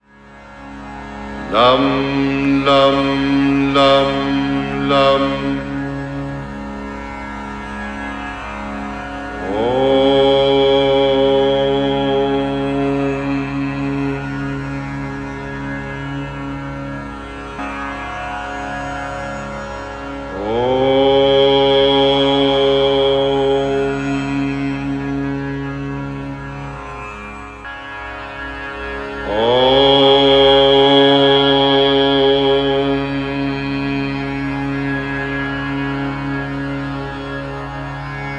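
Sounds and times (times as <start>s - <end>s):
Sanskrit bija mantra and om chanting: 1.4s - 6.7s, 9.4s - 16.8s, 20.3s - 26.4s, 29.2s - 38.3s.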